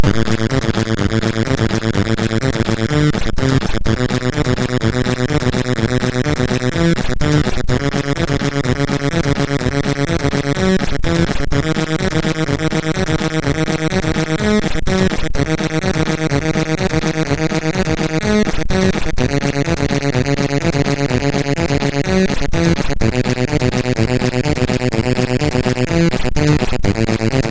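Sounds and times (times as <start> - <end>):
MOS 6581R2 SID chip music: 0.0 - 27.4.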